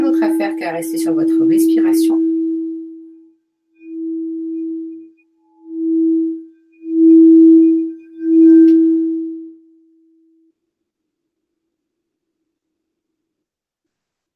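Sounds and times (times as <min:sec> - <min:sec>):
singing bowl humming: 0:00.0 - 0:10.6
speech: 0:00.3 - 0:02.4.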